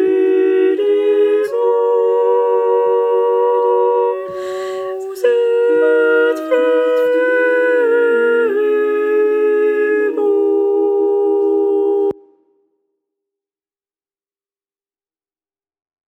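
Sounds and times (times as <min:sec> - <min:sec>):
sopranos singing: 0:00.0 - 0:12.2.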